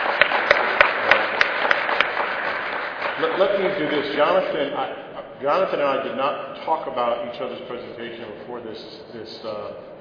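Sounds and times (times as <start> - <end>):
audience applause: 0.0 - 4.3
speech: 3.4 - 9.9.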